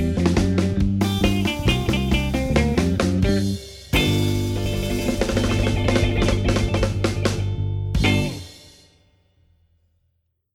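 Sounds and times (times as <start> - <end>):
surf blues drumming: 0.0 - 8.8.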